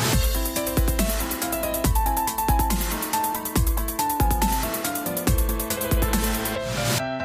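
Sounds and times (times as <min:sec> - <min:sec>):
trap beat: 0:00.1 - 0:07.0.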